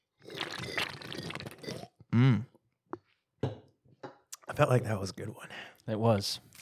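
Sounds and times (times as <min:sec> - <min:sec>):
drink being slurped: 0:00.2 - 0:02.0
speech: 0:02.2 - 0:02.5, 0:04.6 - 0:06.6.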